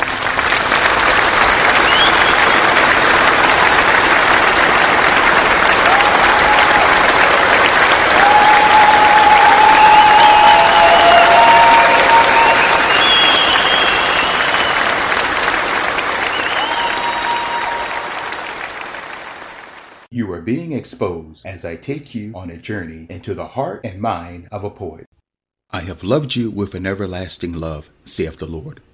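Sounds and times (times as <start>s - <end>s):
audience applause for guests: 0.0s - 20.1s
speech: 20.5s - 28.9s.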